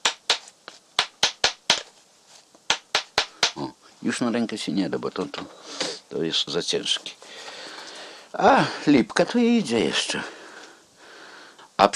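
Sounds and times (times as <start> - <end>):
mallet driving a chisel into hard half-petrified black oak wood: 0.0 - 1.9, 2.7 - 3.6
speech: 3.6 - 7.2, 8.4 - 10.4.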